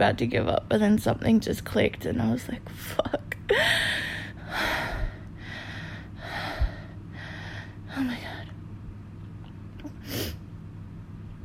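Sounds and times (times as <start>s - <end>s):
speech: 0.0s - 4.9s
heavy breathing: 3.6s - 7.8s.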